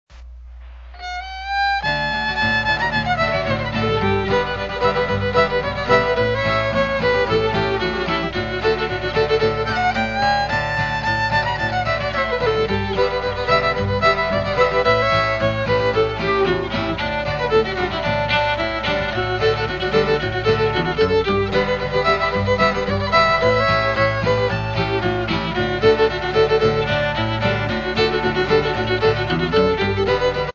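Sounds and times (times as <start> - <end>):
swing music: 1.0 - 30.5.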